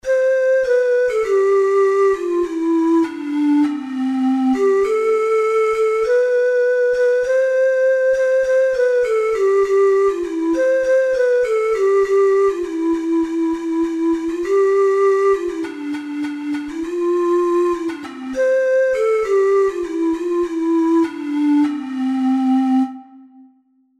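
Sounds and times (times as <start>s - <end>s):
four-hole ocarina playing: 0.0s - 23.6s.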